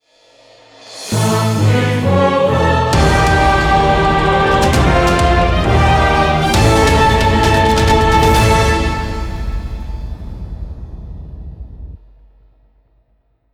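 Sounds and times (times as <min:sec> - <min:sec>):
victory fanfare: 0:01.2 - 0:10.1.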